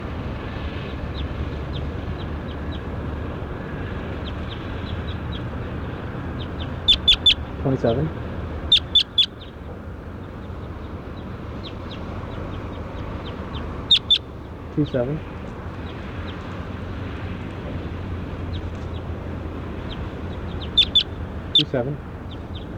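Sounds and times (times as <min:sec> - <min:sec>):
low rumble: 0:00.0 - 0:22.7
sharp clucking calls of a tracked bird: 0:06.3 - 0:07.4, 0:08.6 - 0:09.8, 0:10.4 - 0:14.3, 0:19.8 - 0:22.7
speech: 0:07.6 - 0:08.2, 0:14.8 - 0:15.4, 0:21.7 - 0:22.1.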